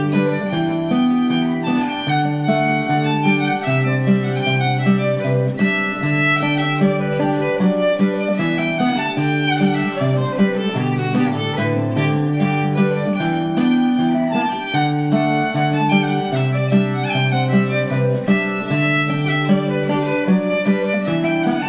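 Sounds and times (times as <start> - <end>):
guitar playing a fiddle tune: 0.0 - 21.6.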